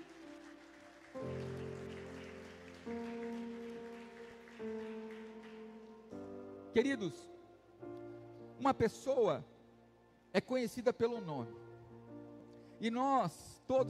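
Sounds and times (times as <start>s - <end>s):
audience applauding: 0.0s - 6.4s
speech: 6.8s - 7.3s, 8.6s - 9.5s, 10.3s - 11.6s, 12.8s - 13.8s.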